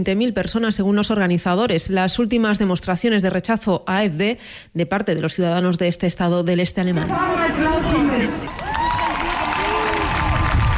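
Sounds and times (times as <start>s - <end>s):
speech: 0.0s - 8.5s
rally crowd in front of a stage cheering and applauding speeches: 7.2s - 10.7s.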